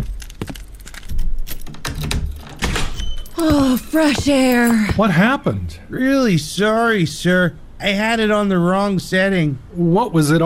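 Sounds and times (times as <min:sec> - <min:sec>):
doors being opened: 0:00.5 - 0:04.9
speech: 0:03.4 - 0:10.4.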